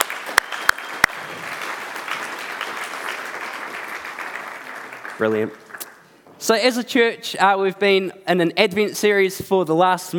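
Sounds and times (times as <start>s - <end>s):
round of applause: 0.0s - 6.1s
speech: 5.2s - 5.6s, 6.4s - 10.1s.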